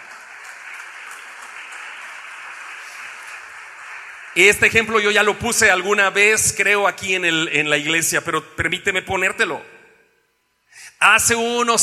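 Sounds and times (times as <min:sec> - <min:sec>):
audience clapping: 0:00.0 - 0:05.6
speech: 0:04.4 - 0:09.8, 0:11.0 - 0:11.8.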